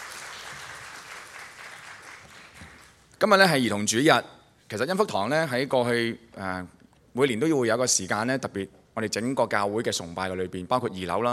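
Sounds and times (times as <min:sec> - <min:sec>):
crowd applauding: 0:00.0 - 0:03.0
speech: 0:03.2 - 0:11.3.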